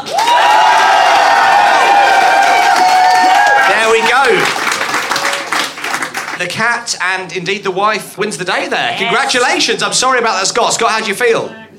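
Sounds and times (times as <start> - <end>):
studio audience cheering and applause: 0.0 - 6.4
speech: 6.4 - 11.7.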